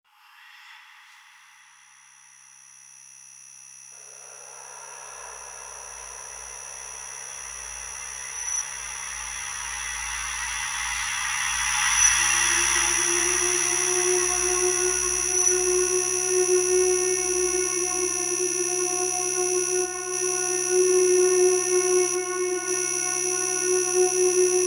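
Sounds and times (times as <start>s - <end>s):
train: 4.1s - 13.9s
electronic soundscape: 13.6s - 24.6s.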